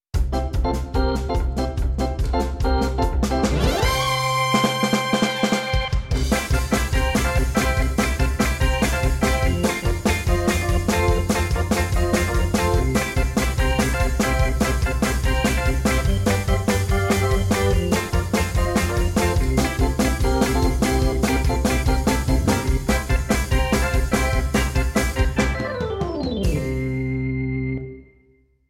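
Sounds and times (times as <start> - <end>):
fast organ soundtrack music: 0.2 - 28.2.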